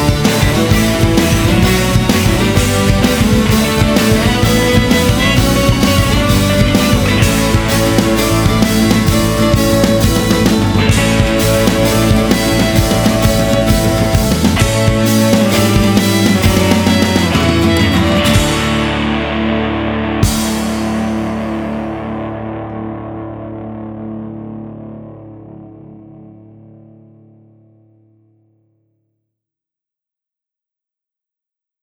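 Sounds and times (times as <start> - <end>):
Irish band playing: 0.0 - 22.1.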